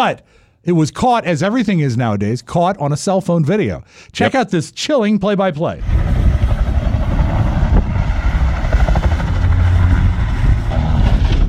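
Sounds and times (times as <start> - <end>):
speech: 0.0 - 6.1
helicopter roar: 5.8 - 11.4.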